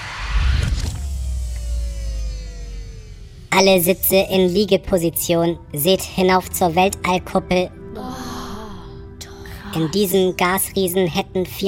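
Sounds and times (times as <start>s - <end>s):
rushing noise of a spacecraft command bridge retracting: 0.0s - 1.9s
spacecraft command bridge motor hum with falling tone: 0.0s - 4.4s
speech: 3.5s - 8.3s, 9.7s - 11.6s.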